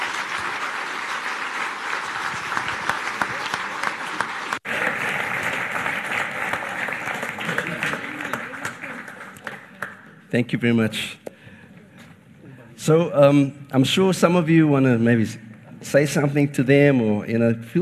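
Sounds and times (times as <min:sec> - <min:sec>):
crowd applauding: 0:00.0 - 0:10.2
speech: 0:10.3 - 0:11.2, 0:12.8 - 0:17.8.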